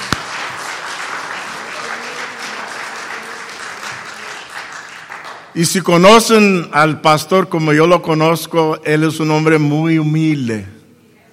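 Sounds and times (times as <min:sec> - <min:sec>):
audience applause: 0:00.0 - 0:05.5
speech: 0:05.6 - 0:10.8.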